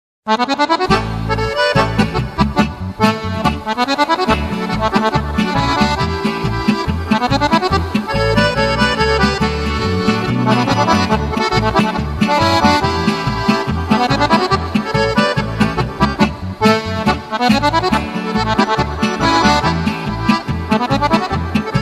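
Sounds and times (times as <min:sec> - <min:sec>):
golden harmonica: 0:00.3 - 0:21.8.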